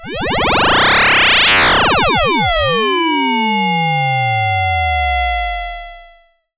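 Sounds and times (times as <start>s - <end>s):
synth effects: 0.0s - 6.1s.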